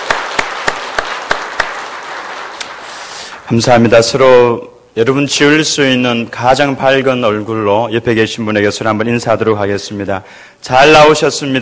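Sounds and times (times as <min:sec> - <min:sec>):
audience applause: 0:00.0 - 0:03.3
speech: 0:03.5 - 0:11.6.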